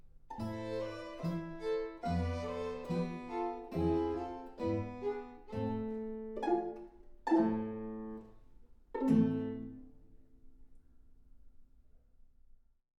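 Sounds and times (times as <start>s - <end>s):
guitar: 0.3s - 8.4s, 9.0s - 10.0s.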